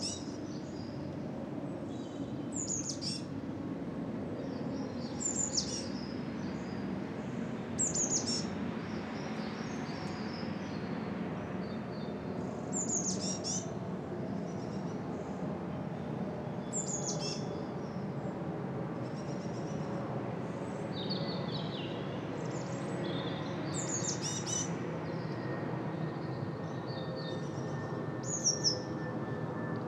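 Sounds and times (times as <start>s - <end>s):
birds singing on a bright winter morning in south east London: 0.0s - 1.1s, 1.8s - 3.4s, 4.4s - 13.8s, 16.6s - 18.0s, 20.9s - 29.1s
planes passing over south east London heading to Heathrow airport: 0.0s - 29.8s.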